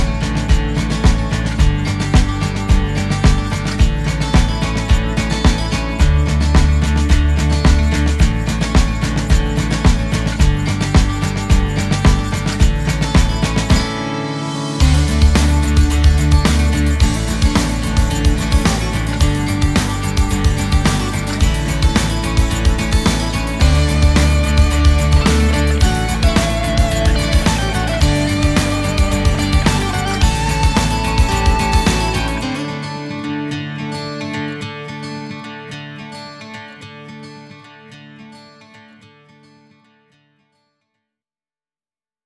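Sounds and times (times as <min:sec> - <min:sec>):
easy listening pop: 0:00.0 - 0:33.5.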